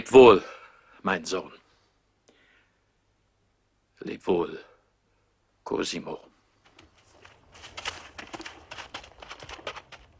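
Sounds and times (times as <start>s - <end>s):
speech: 0.0s - 1.6s, 4.0s - 4.7s, 5.7s - 6.3s
horse hooves riding slowly away: 6.4s - 10.1s.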